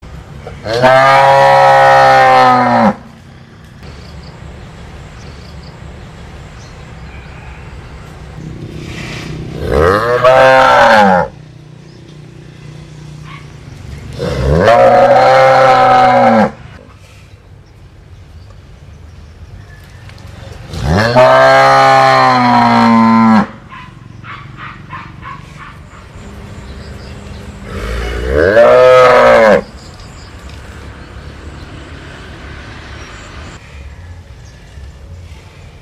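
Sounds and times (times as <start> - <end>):
speech: 0.4 - 1.4
cattle mooing: 0.6 - 3.0, 9.6 - 11.4, 14.2 - 16.6, 20.8 - 23.6, 27.6 - 29.7.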